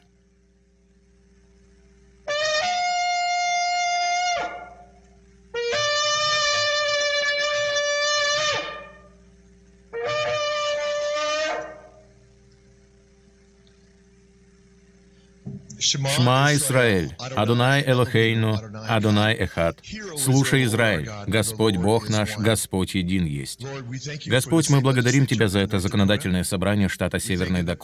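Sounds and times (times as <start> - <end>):
shofar ram's horn being blown: 2.3 - 9.2, 9.9 - 12.1
speech: 15.9 - 27.8.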